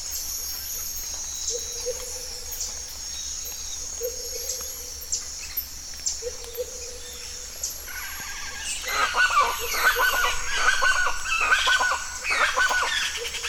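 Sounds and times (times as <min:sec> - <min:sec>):
steady high insect-like hiss: 0:00.0 - 0:13.4
birds chirping and calling at a bird reserve: 0:03.9 - 0:13.4.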